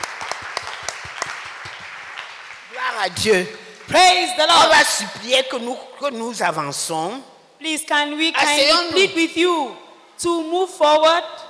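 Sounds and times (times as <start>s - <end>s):
congregation clapping hands in praise during a church fasting service: 0.0s - 5.6s
speech: 3.0s - 11.4s.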